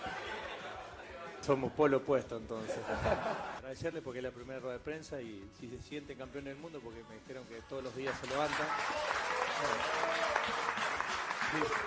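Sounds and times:
laughter: 0.0 - 1.4, 2.6 - 3.6
speech: 1.5 - 10.7, 11.5 - 11.8
crowd applauding in a press room: 8.0 - 11.8.

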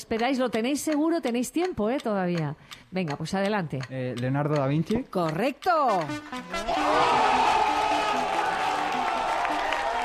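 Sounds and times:
speech: 0.0 - 7.6
crowd cheering and whooping: 6.6 - 10.0
applause from both teams: 6.8 - 10.0.

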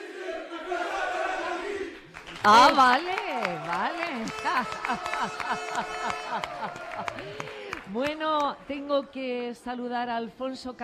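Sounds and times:
group shouting a team battle cry: 0.0 - 2.0
speech: 2.4 - 10.8
laughter: 3.3 - 7.8.

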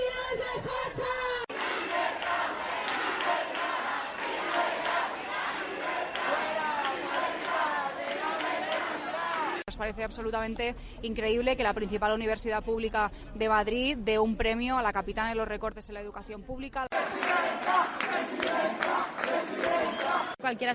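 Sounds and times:
crowd of protesters shouting slogans: 0.1 - 9.7, 16.9 - 20.4
speech: 9.9 - 17.1, 18.6 - 20.7.

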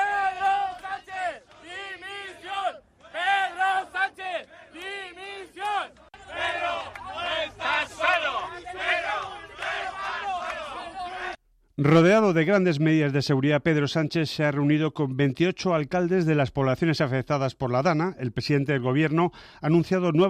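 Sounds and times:
crowd booing Pedro Sánchez in Valencia: 0.0 - 11.4
speech: 11.8 - 20.2.

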